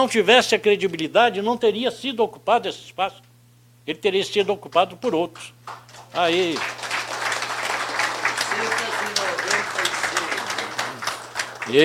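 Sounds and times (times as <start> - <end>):
speech: 0.0 - 3.3, 3.9 - 6.8
audience applauding: 5.6 - 11.8.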